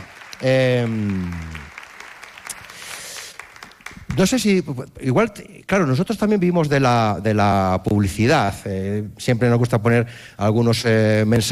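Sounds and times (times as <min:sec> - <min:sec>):
audience applause: 0:00.0 - 0:04.5
speech: 0:00.4 - 0:01.6, 0:04.2 - 0:11.5.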